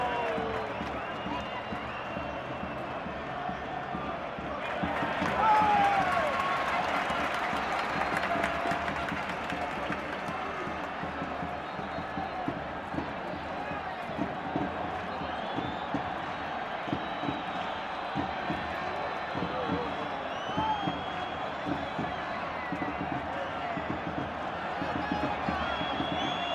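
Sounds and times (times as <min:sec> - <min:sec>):
huge football crowd cheering in Granada Spain: 0:00.0 - 0:26.5.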